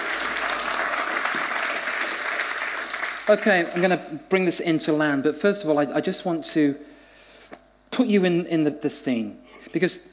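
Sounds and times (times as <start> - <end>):
round of applause: 0.0 - 3.8
speech: 3.3 - 6.9, 8.0 - 10.1.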